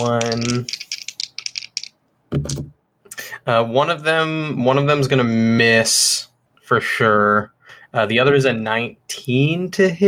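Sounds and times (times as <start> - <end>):
speech: 0.0 - 0.8, 2.3 - 2.7, 3.4 - 10.0
dice rattling and rolling: 0.0 - 2.0.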